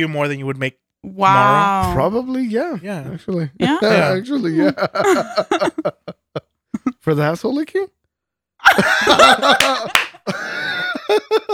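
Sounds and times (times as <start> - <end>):
speech: 0.0 - 6.2, 7.0 - 8.0, 8.7 - 11.5
bubbly laughter: 3.7 - 7.0, 8.6 - 11.5
hand claps: 9.4 - 10.3.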